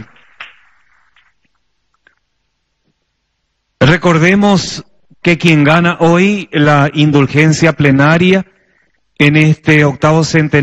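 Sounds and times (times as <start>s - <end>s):
audience applause: 0.0s - 1.3s
speech: 3.9s - 8.5s, 9.2s - 10.6s.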